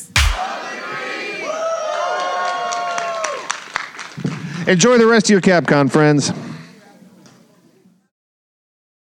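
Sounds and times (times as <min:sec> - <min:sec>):
audience yelling: 0:00.4 - 0:03.5
speech: 0:04.7 - 0:06.4.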